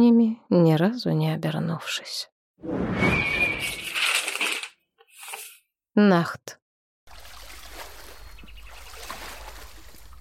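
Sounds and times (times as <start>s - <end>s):
speech: 0.0s - 3.8s, 6.0s - 6.6s
small reed boat gliding through water: 7.1s - 10.2s.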